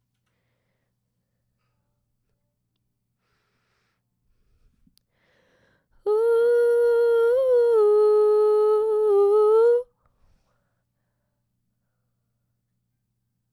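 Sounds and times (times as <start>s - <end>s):
vocal harmony: 6.0s - 9.9s.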